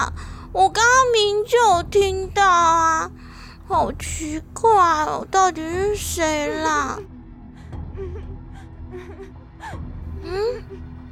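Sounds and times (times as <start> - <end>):
speech: 0.0 - 7.1, 10.3 - 10.7
woman crying softly: 7.5 - 11.0.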